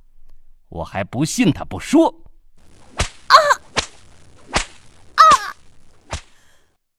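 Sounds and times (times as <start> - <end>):
speech: 0.7 - 2.2
spiked steel whip cracks: 2.8 - 4.9, 6.0 - 6.4
person crying out in pain while being lashed: 3.3 - 3.6, 5.2 - 5.6.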